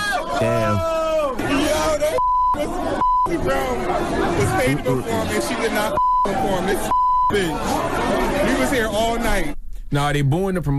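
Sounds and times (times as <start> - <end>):
large crowd booing and jeering a late performer: 0.0 - 9.3
speech: 0.4 - 1.0, 2.6 - 10.7
mid-pitched censor beeps: 2.2 - 3.5, 5.9 - 7.5.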